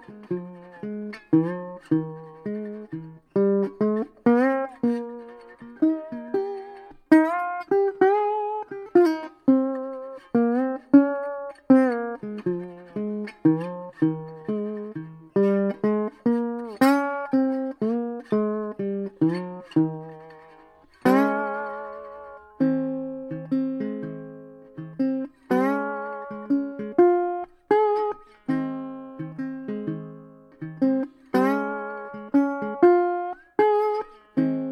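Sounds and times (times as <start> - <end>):
six-string resonator guitar: 0.0 - 34.7.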